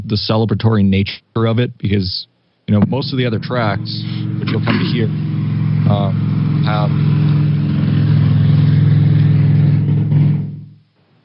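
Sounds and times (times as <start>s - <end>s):
speech: 0.0s - 7.4s
airplane passing overhead: 3.3s - 10.8s.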